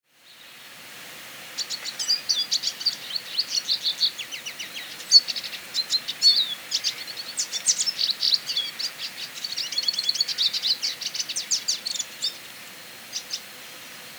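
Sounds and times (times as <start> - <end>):
Eurasian siskin song of high twittering notes and rattling trills: 1.6 - 12.4.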